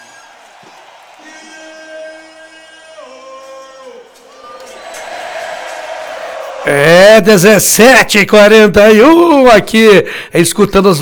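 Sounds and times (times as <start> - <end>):
crowd clapping and cheering: 0.0 - 8.4
speech: 6.6 - 11.0.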